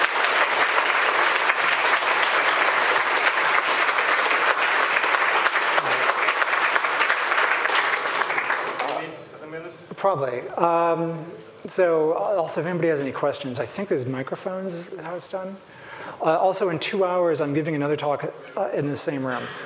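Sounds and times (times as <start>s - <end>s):
audience applause: 0.0s - 9.1s
speech: 10.0s - 19.6s.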